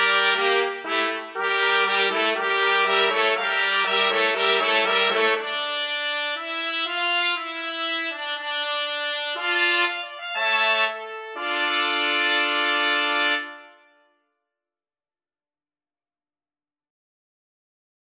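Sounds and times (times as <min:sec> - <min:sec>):
trumpet quartet playing: 0:00.0 - 0:13.9.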